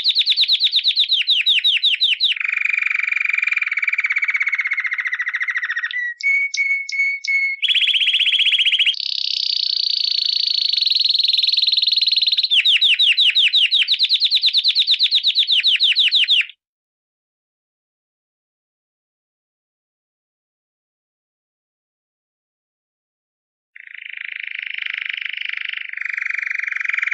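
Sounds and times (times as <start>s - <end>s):
canary singing: 0.0s - 16.6s, 23.8s - 27.1s.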